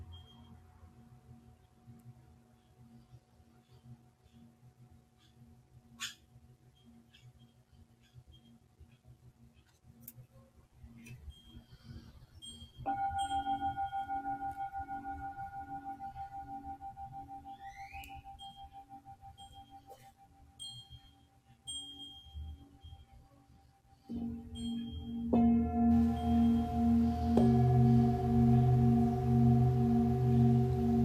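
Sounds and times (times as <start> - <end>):
Tibetan singing bowl humming and struck: 11.2 - 31.0.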